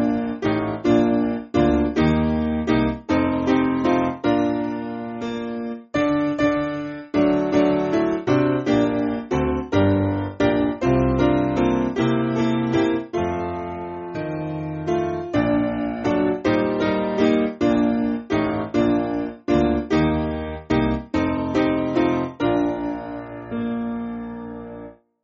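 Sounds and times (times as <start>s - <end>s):
piano playing a carol: 0.0s - 25.1s.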